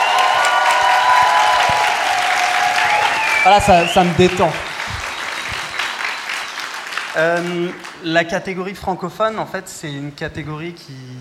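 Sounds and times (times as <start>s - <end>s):
people cheering at the Paris Podcast Festival: 0.0s - 8.1s
audience applauding at the Paris Podcast Festival: 0.0s - 8.6s
speech: 3.4s - 4.6s, 7.2s - 11.1s.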